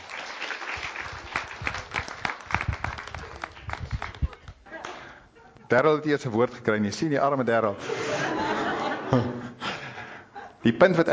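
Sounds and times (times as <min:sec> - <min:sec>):
audience applause: 0:00.0 - 0:04.4
speech: 0:05.7 - 0:08.4, 0:09.1 - 0:09.4, 0:10.6 - 0:11.1
laughter: 0:07.7 - 0:10.6.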